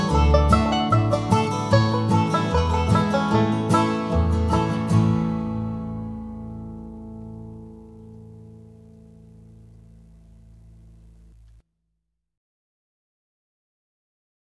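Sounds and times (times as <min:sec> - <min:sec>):
banjo playing: 0:00.0 - 0:09.7.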